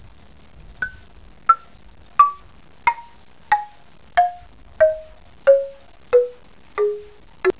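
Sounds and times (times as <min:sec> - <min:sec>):
instrumental music: 0:00.8 - 0:07.5.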